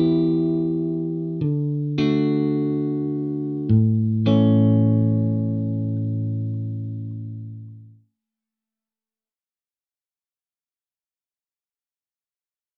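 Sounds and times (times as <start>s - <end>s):
main guitar in E minor: 0.0s - 8.0s.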